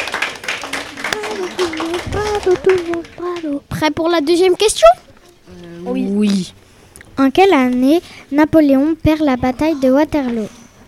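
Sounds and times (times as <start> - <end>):
audience clapping: 0.0 - 3.9
speech: 2.5 - 6.6, 7.2 - 10.6.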